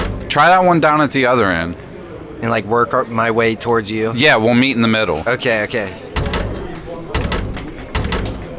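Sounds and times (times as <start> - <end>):
locked door being tried and rattled: 0.0 - 0.8, 6.2 - 8.5
speech: 0.4 - 6.0.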